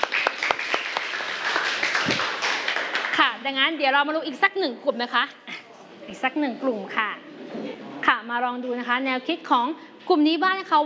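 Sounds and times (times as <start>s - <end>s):
audience applause for a group: 0.0s - 3.2s
speech: 3.4s - 5.5s, 6.1s - 7.2s, 8.1s - 10.8s.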